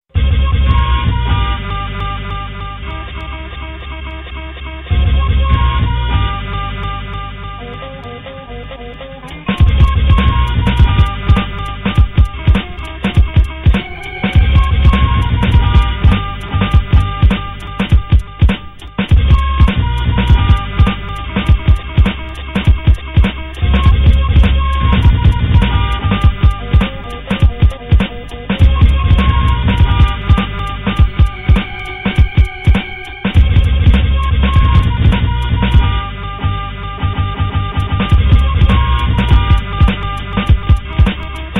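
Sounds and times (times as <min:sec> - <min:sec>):
music beat: 0:00.1 - 0:41.5.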